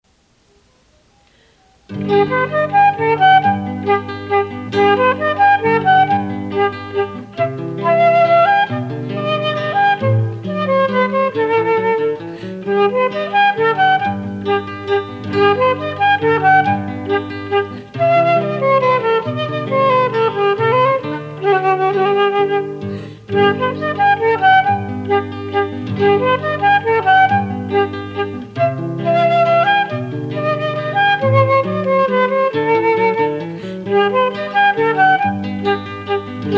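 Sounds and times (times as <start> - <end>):
guitar: 0.1 - 36.5.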